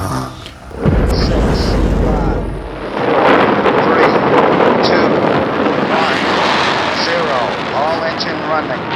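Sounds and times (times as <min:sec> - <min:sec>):
voice imitating rocket launch rumble: 0:00.0 - 0:08.9.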